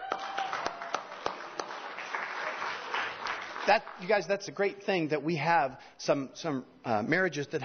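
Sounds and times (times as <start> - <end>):
audience applauding long marriages: 0.0 - 4.3
speech: 3.7 - 7.6.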